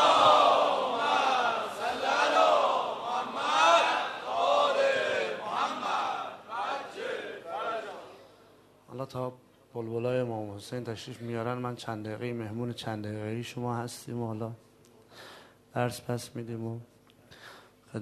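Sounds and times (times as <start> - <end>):
audience loudly chanting salawat in unison: 0.0 - 8.2
speech: 9.1 - 16.9.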